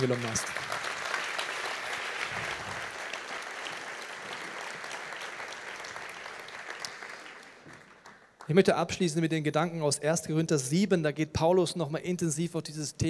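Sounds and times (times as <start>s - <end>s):
speech: 0.0s - 0.6s, 8.5s - 13.0s
audience applause: 0.0s - 8.4s.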